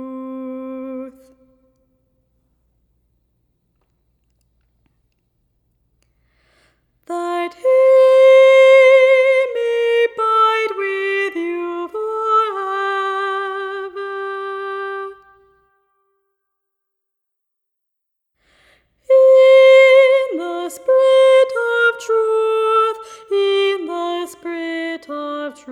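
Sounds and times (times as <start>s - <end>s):
soprano singing: 0.0s - 1.8s, 7.1s - 15.6s, 19.1s - 25.7s.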